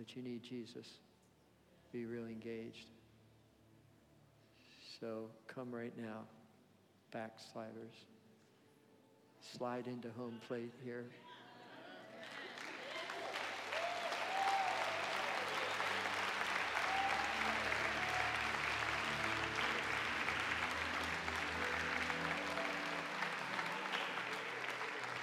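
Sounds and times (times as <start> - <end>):
speech: 0.0 - 1.1, 1.9 - 3.0, 5.0 - 6.4, 7.1 - 8.2, 9.4 - 11.3
audience clapping: 12.2 - 25.2.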